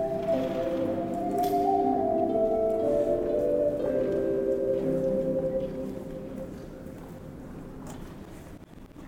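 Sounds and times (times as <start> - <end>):
solo ocarina lullaby: 0.0 - 7.0.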